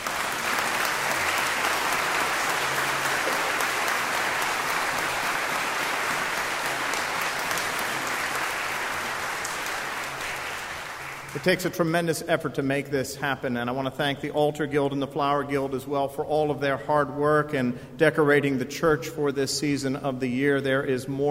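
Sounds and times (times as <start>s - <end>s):
church audience applauding: 0.0s - 11.7s
speech: 11.4s - 21.2s.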